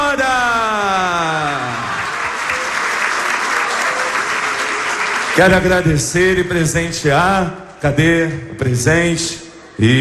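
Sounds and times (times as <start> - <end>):
crowd applause: 1.0 - 6.4
speech: 5.4 - 9.9.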